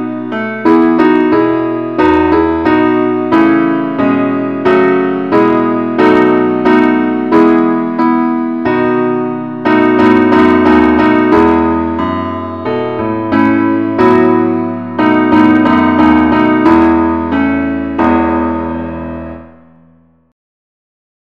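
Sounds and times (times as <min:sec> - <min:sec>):
keyboard tune in the key of E: 0:00.0 - 0:20.3.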